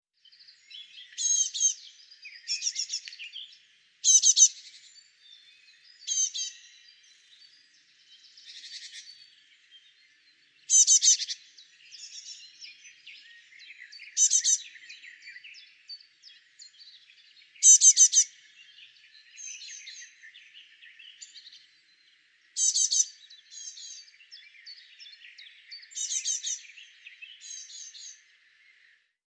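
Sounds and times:
other small birds twittering: 0.4s - 29.0s
great tit calling: 1.0s - 1.8s, 2.4s - 3.1s, 4.0s - 4.6s, 6.0s - 6.7s, 10.7s - 12.4s, 14.1s - 14.6s, 17.6s - 18.3s, 22.6s - 24.4s, 25.9s - 28.2s.

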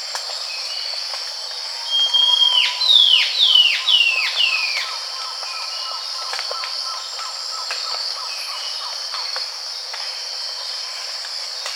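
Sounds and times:
high insect-like hiss: 0.0s - 11.7s
bird whistling: 1.8s - 4.9s.

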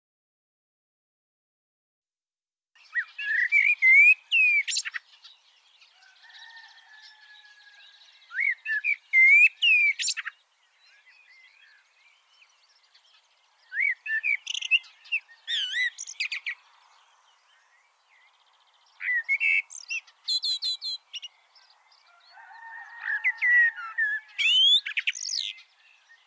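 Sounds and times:
faint chirps: 2.8s - 22.5s
common blackbird singing: 2.8s - 26.2s.

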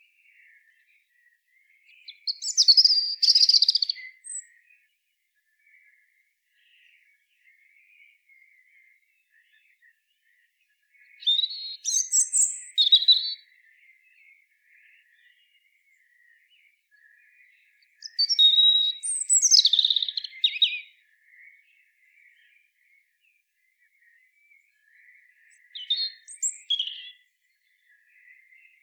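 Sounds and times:
European robin singing: 0.2s - 4.9s, 6.6s - 22.7s, 23.8s - 28.8s.

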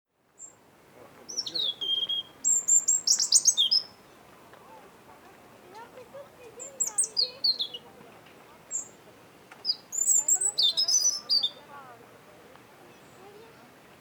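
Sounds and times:
European robin warbling: 1.3s - 3.9s, 6.6s - 7.9s, 9.6s - 11.7s.

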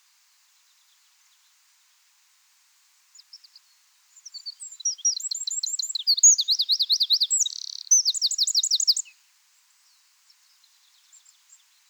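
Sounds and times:
Eurasian wren singing shrill trills: 4.3s - 9.1s.

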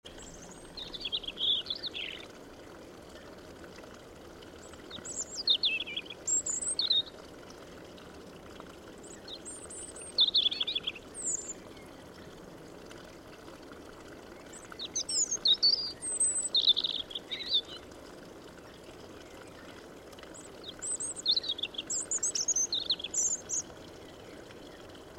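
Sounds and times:
European robin song: 0.0s - 2.3s, 4.9s - 7.2s, 9.0s - 12.0s, 14.4s - 17.8s, 20.4s - 24.9s.

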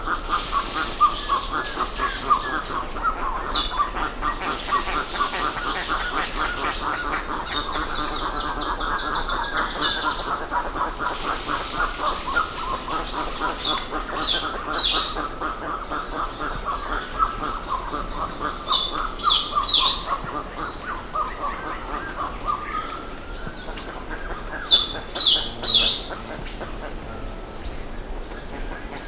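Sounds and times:
birds chattering: 0.0s - 29.0s.

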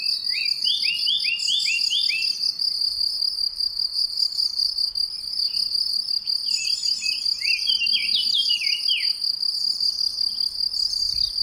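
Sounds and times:
Eurasian blackcap singing: 0.0s - 2.4s, 6.4s - 9.2s.

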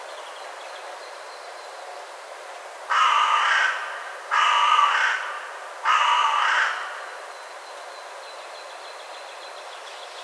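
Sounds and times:
Carrion crow cawing: 2.9s - 7.1s.

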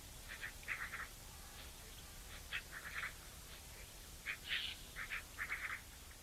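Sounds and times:
Eurasian magpie Pica pica chattering: 0.3s - 1.1s, 2.3s - 3.2s, 3.7s - 5.9s.

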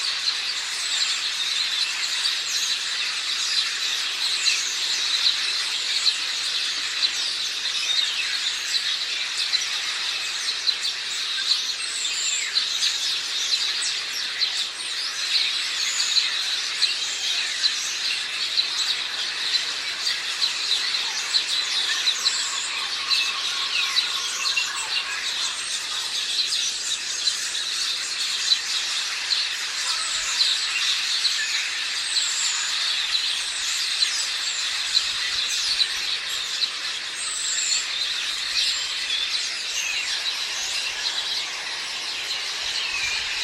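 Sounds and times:
house sparrows chattering in a dense flock: 0.0s - 43.4s.

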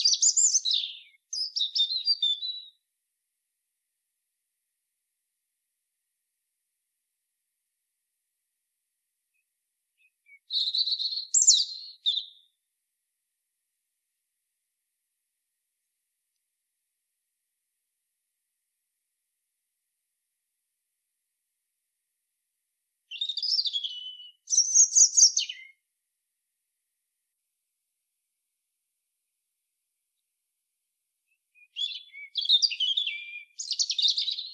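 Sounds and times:
European robin Erithacus rubecula singing: 0.0s - 2.8s, 10.0s - 12.6s, 23.1s - 25.8s, 31.6s - 34.5s.

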